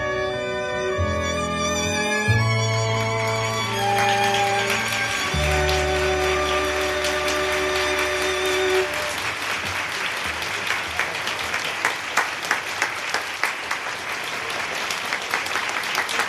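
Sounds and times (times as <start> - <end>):
held musical note: 0.0 - 9.3
audience applause after a singer's live performance: 2.8 - 16.2.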